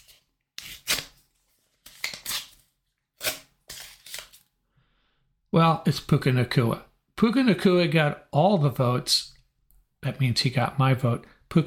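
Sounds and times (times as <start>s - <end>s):
envelope being torn open: 0.0s - 4.5s
speech: 5.5s - 9.3s, 10.0s - 11.6s.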